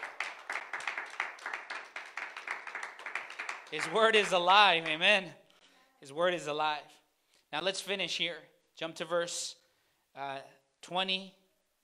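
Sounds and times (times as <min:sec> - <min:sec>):
audience applause: 0:00.0 - 0:05.1
speech: 0:03.7 - 0:05.4, 0:06.0 - 0:09.6, 0:10.2 - 0:11.8.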